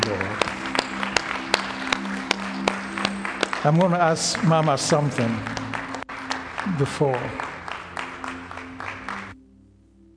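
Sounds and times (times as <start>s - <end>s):
worship congregation clapping rhythmically in unison: 0.0s - 9.4s
speech: 3.6s - 5.6s, 6.7s - 7.4s.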